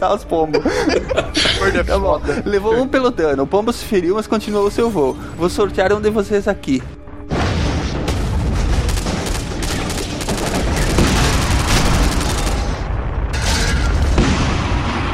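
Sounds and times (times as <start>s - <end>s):
speech: 0.0s - 7.0s
laughter: 0.4s - 3.1s
bomber crashing and exploding: 7.3s - 15.1s.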